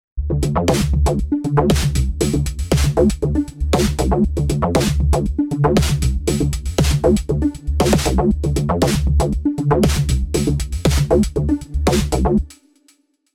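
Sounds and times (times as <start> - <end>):
Digitone synthesizer sounds: 0.3 - 12.5.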